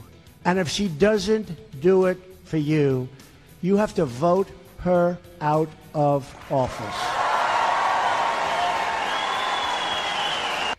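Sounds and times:
speech: 0:00.4 - 0:07.1
rally crowd cheering and applauding: 0:06.4 - 0:10.7.

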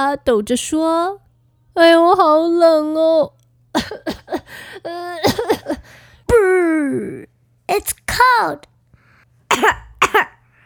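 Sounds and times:
speech: 0:00.0 - 0:01.2, 0:01.8 - 0:05.8, 0:06.4 - 0:08.7, 0:09.5 - 0:10.3
raccoon coughing: 0:03.8 - 0:06.0, 0:09.5 - 0:10.4.

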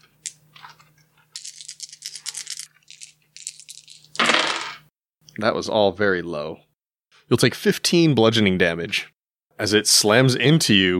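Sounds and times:
hard plastic polyhedral dice rattling and rolling: 0:01.4 - 0:04.8
speech: 0:05.4 - 0:06.7, 0:07.3 - 0:10.9.

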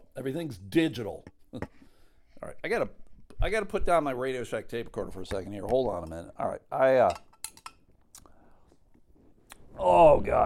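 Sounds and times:
speech: 0:00.2 - 0:01.8, 0:02.6 - 0:07.3, 0:09.8 - 0:10.4
spoon clinking in a cup of hot chocolate: 0:07.0 - 0:07.8.

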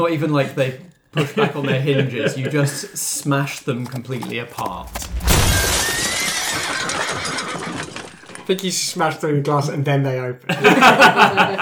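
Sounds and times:
speech: 0:00.0 - 0:05.3, 0:08.5 - 0:11.6
laughter: 0:00.6 - 0:03.4, 0:05.5 - 0:09.0, 0:10.4 - 0:11.6
horses whinnying and neighing: 0:03.8 - 0:08.5
low rumbling: 0:04.7 - 0:06.8.

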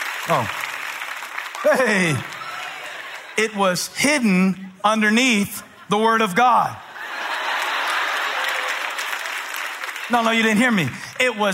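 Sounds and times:
audience applause: 0:00.0 - 0:03.4, 0:07.0 - 0:11.5
speech: 0:00.2 - 0:00.6, 0:01.6 - 0:02.4, 0:03.4 - 0:06.8, 0:10.1 - 0:11.5
laughter: 0:01.5 - 0:11.5.

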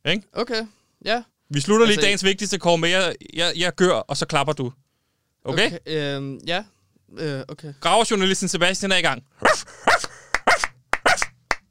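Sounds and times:
speech: 0:00.0 - 0:04.8, 0:05.4 - 0:10.0
person imitating a dachshund barking: 0:09.4 - 0:11.4.

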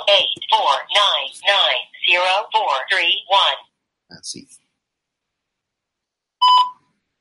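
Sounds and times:
speech: 0:00.1 - 0:04.6
voicemail beep: 0:06.4 - 0:06.8.

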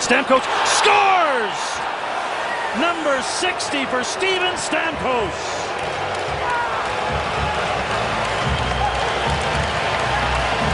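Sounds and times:
arena crowd standing ovation: 0:00.0 - 0:10.7
speech: 0:00.1 - 0:02.1, 0:02.7 - 0:06.0.

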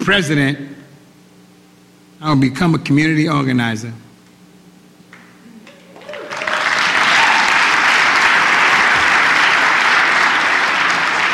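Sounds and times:
speech: 0:00.0 - 0:00.8, 0:02.2 - 0:04.0
audience clapping: 0:05.1 - 0:11.3.

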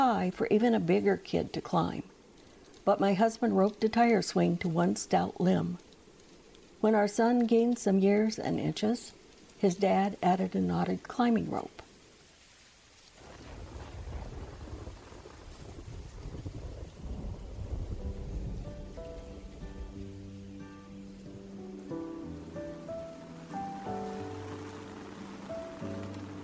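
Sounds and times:
speech: 0:00.0 - 0:02.2, 0:02.8 - 0:05.9, 0:06.8 - 0:11.8
steady rain: 0:00.0 - 0:26.4
deep thunder rumbling: 0:13.2 - 0:20.1, 0:21.9 - 0:26.4
soft sustained musical melody: 0:18.0 - 0:26.4.

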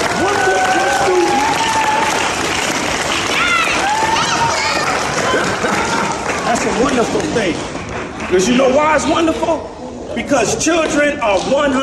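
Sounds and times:
voices whooping and cheering: 0:00.0 - 0:02.4, 0:03.2 - 0:06.3
crowd applause: 0:00.0 - 0:09.0
speech: 0:08.3 - 0:11.8.

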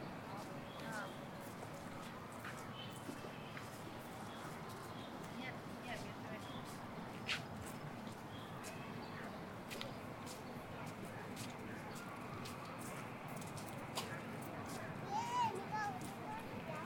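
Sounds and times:
murmur of many voices at Ditan in Beijing: 0:00.0 - 0:16.8.

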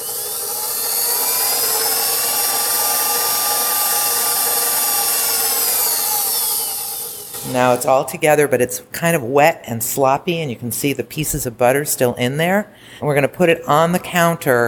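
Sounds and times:
electric mixer churning pastry dough: 0:00.0 - 0:07.9
speech: 0:07.5 - 0:14.6.

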